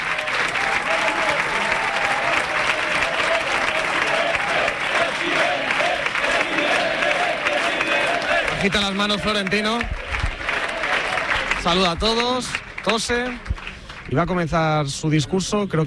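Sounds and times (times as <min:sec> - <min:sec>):
audience applause for a speaker: 0:00.0 - 0:15.8
speech: 0:08.6 - 0:10.0, 0:11.6 - 0:13.5, 0:14.1 - 0:15.8.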